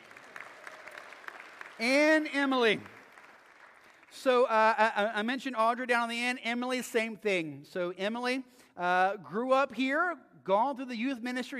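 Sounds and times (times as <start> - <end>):
audience applause: 0.0 - 4.2
speech: 1.8 - 3.0, 4.2 - 11.5.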